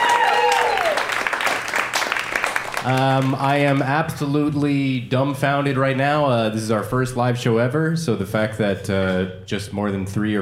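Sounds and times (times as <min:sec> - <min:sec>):
audience applause at a live show: 0:00.0 - 0:03.8
speech: 0:02.8 - 0:10.4.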